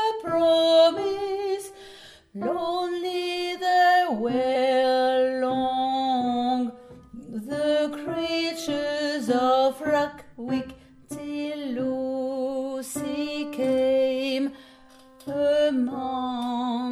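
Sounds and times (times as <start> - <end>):
alto singing a lullaby: 0.0 - 1.8, 2.4 - 14.6, 15.2 - 16.9.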